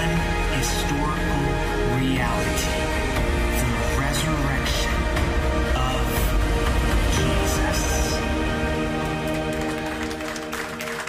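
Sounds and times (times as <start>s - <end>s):
sustained musical tones: 0.0s - 11.0s
audience applause: 8.8s - 11.0s.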